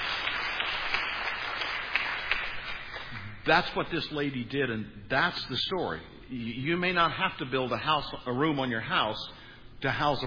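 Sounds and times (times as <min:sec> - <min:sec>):
audience clapping: 0:00.0 - 0:03.7
speech: 0:03.4 - 0:10.2.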